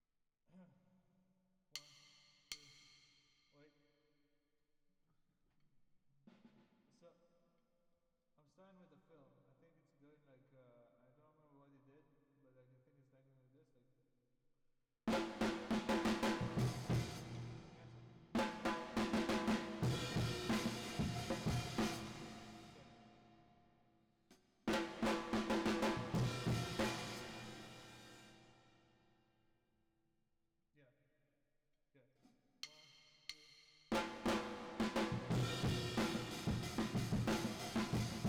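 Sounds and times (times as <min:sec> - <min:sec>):
drums with reverb: 0:15.1 - 0:23.4, 0:24.3 - 0:28.7, 0:32.6 - 0:38.2.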